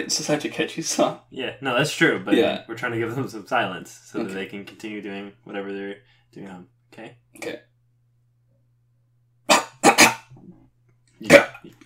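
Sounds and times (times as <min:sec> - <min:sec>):
speech: 0:00.0 - 0:07.7, 0:11.2 - 0:11.8
person coughing: 0:09.5 - 0:10.4.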